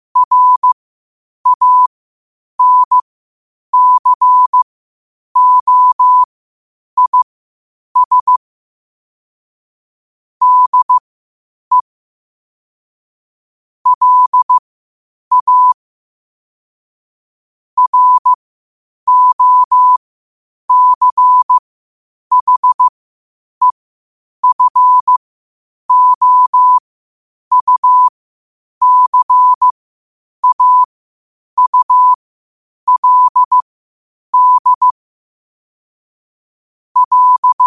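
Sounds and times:
morse code at 5 wpm: 0:00.2 - 0:00.8, 0:01.5 - 0:01.9, 0:02.6 - 0:03.0, 0:03.8 - 0:04.6, 0:05.4 - 0:06.3, 0:07.0 - 0:07.3, 0:08.0 - 0:08.4, 0:10.4 - 0:11.0, 0:13.9 - 0:14.6, 0:15.3 - 0:15.8, 0:17.8 - 0:18.4, 0:19.1 - 0:20.0, 0:20.7 - 0:21.6, 0:22.3 - 0:22.9, 0:24.4 - 0:25.2, 0:25.9 - 0:26.8, 0:27.5 - 0:28.1, 0:28.8 - 0:29.7, 0:30.4 - 0:30.9, 0:31.6 - 0:32.2, 0:32.9 - 0:33.6, 0:34.4 - 0:35.0, 0:37.0 - 0:37.6.

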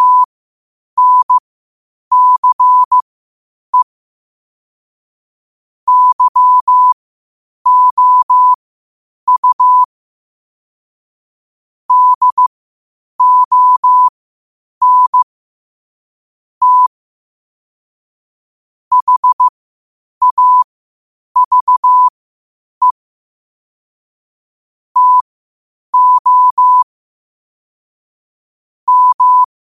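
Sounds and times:
morse code at 5 wpm: 0:00.0 - 0:00.3, 0:01.0 - 0:01.4, 0:02.1 - 0:03.0, 0:05.9 - 0:07.0, 0:07.7 - 0:08.6, 0:09.3 - 0:09.9, 0:11.9 - 0:12.5, 0:13.2 - 0:14.1, 0:14.8 - 0:15.2, 0:16.6 - 0:16.9, 0:18.9 - 0:19.5, 0:20.2 - 0:20.7, 0:21.4 - 0:22.1, 0:25.0 - 0:25.2, 0:26.0 - 0:26.8, 0:28.9 - 0:29.5.

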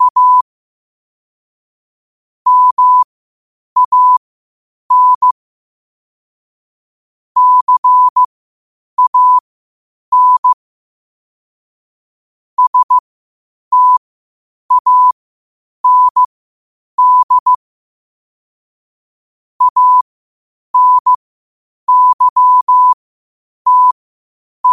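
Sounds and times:
morse code at 5 wpm: 0:00.0 - 0:00.4, 0:02.5 - 0:03.1, 0:03.8 - 0:04.2, 0:04.9 - 0:05.4, 0:07.4 - 0:08.3, 0:09.0 - 0:09.4, 0:10.1 - 0:10.6, 0:12.6 - 0:13.0, 0:13.7 - 0:14.0, 0:14.7 - 0:15.2, 0:15.8 - 0:16.3, 0:17.0 - 0:17.6, 0:19.6 - 0:20.0, 0:20.8 - 0:21.2, 0:21.9 - 0:23.0, 0:23.7 - 0:24.0.

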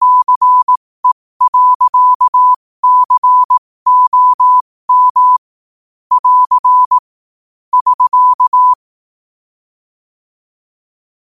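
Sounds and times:
morse code at 5 wpm: 0:00.0 - 0:05.4, 0:06.1 - 0:07.0, 0:07.8 - 0:08.8.

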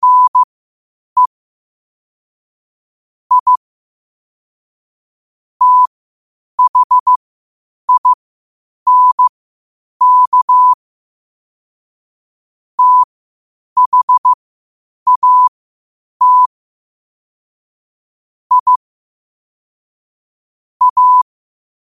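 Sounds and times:
morse code at 5 wpm: 0:00.0 - 0:00.5, 0:03.3 - 0:03.6, 0:05.6 - 0:05.9, 0:06.6 - 0:07.2, 0:07.9 - 0:08.2, 0:08.9 - 0:09.3, 0:10.0 - 0:10.8, 0:12.8 - 0:13.1, 0:13.8 - 0:14.4, 0:15.1 - 0:15.5, 0:16.2 - 0:16.5, 0:18.5 - 0:18.8, 0:20.8 - 0:21.3.

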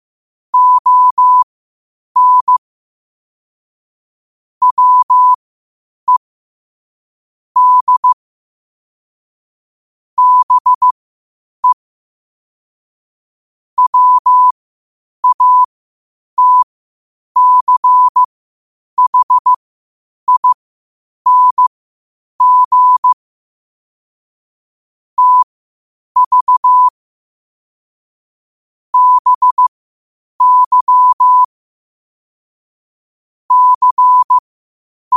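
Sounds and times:
morse code at 5 wpm: 0:00.6 - 0:01.4, 0:02.2 - 0:02.6, 0:04.6 - 0:05.4, 0:07.6 - 0:08.2, 0:10.2 - 0:11.0, 0:13.8 - 0:14.6, 0:15.2 - 0:15.7, 0:16.4 - 0:16.6, 0:17.4 - 0:18.3, 0:19.0 - 0:19.6, 0:20.3 - 0:20.6, 0:21.3 - 0:21.7, 0:22.4 - 0:23.2, 0:25.2 - 0:25.5, 0:26.2 - 0:27.0, 0:29.0 - 0:29.7, 0:30.4 - 0:31.5, 0:33.5 - 0:34.4.

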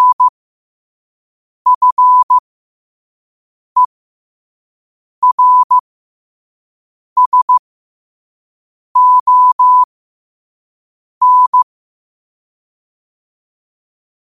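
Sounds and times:
morse code at 5 wpm: 0:00.0 - 0:00.3, 0:01.7 - 0:02.4, 0:05.2 - 0:05.8, 0:07.2 - 0:07.6, 0:09.0 - 0:09.9, 0:11.2 - 0:11.7.

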